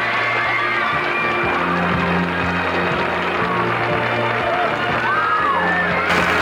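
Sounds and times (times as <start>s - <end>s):
studio audience clapping: 0.0s - 6.4s.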